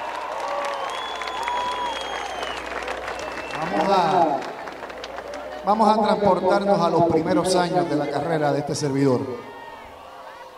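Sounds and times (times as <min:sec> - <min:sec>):
crowd cheering: 0:00.0 - 0:10.5
loud crowd applause: 0:00.0 - 0:10.5
crowd whistles: 0:00.5 - 0:03.9
speech: 0:03.6 - 0:04.5, 0:05.6 - 0:09.5.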